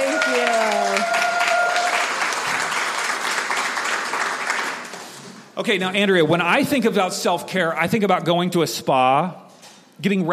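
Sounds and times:
audience applause welcoming a guest: 0.0s - 5.2s
speech: 5.6s - 9.4s, 10.0s - 10.3s.

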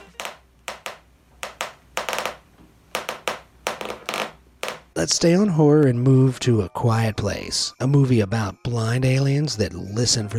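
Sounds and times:
Foley sound of pressing across a balloon: 0.0s - 5.0s
speech: 5.0s - 10.3s.

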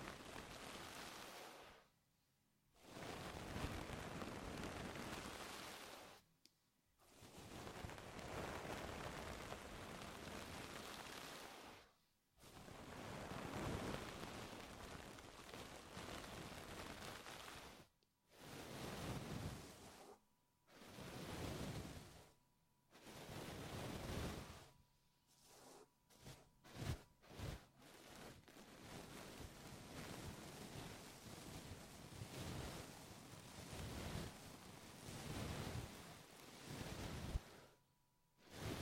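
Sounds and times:
deep ear massage rubbing sounds: 0.0s - 1.9s, 2.8s - 6.2s, 7.0s - 37.7s, 38.4s - 38.8s.

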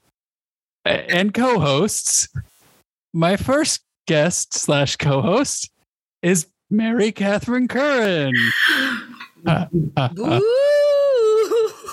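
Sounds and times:
speech: 0.9s - 2.5s, 3.1s - 10.7s
person imitating a spooky ghost moan: 9.5s - 11.8s.

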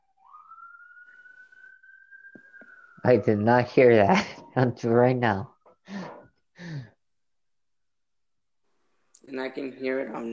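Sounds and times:
siren wailing: 0.0s - 6.4s
speech: 3.0s - 5.5s, 9.6s - 10.3s.

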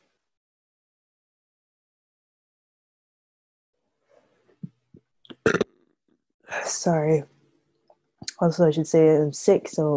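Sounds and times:
burping: 5.3s - 5.8s
speech: 6.5s - 7.3s, 8.3s - 9.9s.

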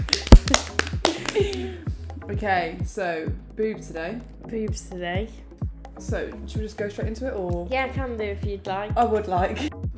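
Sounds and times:
hand clapping: 0.0s - 1.8s
speech: 2.3s - 9.7s.

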